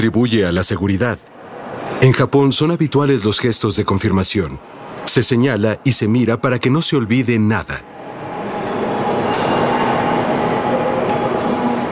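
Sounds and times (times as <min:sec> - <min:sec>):
speech: 0:00.0 - 0:01.3, 0:02.0 - 0:08.3
Shinkansen bullet train running past: 0:04.6 - 0:05.3, 0:07.8 - 0:11.9.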